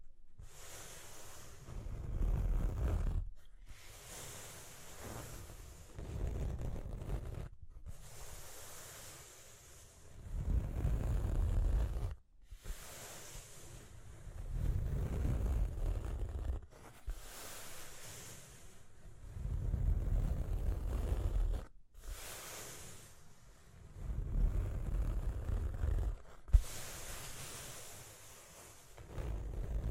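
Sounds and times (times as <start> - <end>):
rough rumbling scratching: 1.6 - 3.5, 4.7 - 7.6, 10.3 - 12.2, 14.4 - 17.3, 19.3 - 21.7, 24.0 - 29.9.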